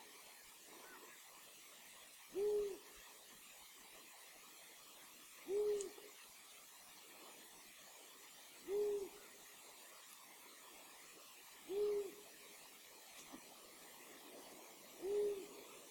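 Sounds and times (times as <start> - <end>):
long-eared owl hooting: 2.3 - 3.0, 5.4 - 6.1, 8.6 - 9.2, 11.6 - 12.4, 14.9 - 15.8.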